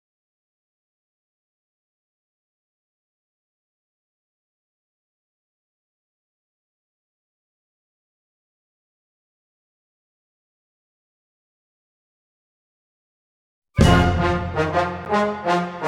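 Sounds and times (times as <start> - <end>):
orchestral music: 13.8 - 15.8.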